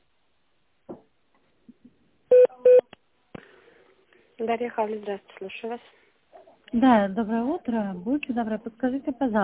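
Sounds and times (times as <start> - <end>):
steady one-second electronic beep: 2.3 - 2.9
speech: 4.4 - 6.0, 6.7 - 9.4.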